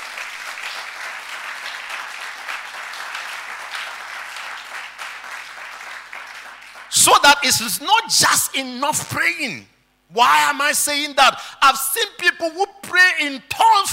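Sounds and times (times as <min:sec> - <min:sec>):
audience clapping: 0:00.0 - 0:07.2
speech: 0:07.0 - 0:13.9.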